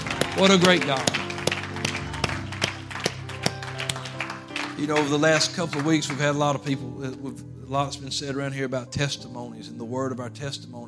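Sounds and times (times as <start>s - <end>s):
audience hand clapping: 0.0s - 6.6s
speech: 0.4s - 1.2s, 4.8s - 10.8s.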